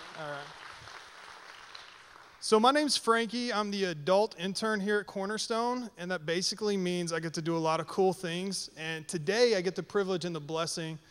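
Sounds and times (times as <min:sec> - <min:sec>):
audience applause: 0:00.0 - 0:02.4
speech: 0:00.2 - 0:00.6, 0:02.4 - 0:11.0.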